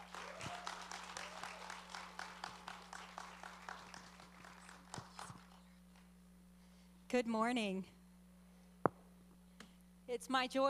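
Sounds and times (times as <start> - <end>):
church service audience clapping to welcome a guest speaker: 0.0 - 5.7
speech: 7.2 - 8.0, 10.2 - 10.6.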